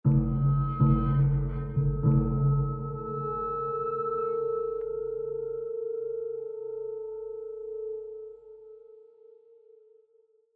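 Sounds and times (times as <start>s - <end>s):
tense mood music: 0.1s - 7.6s.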